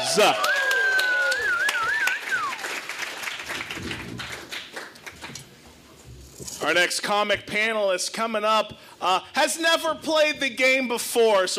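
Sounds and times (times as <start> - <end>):
audience applause: 0.0 - 5.4
speech: 0.2 - 0.5, 6.6 - 11.5
shrill wavering whistle: 0.4 - 2.7.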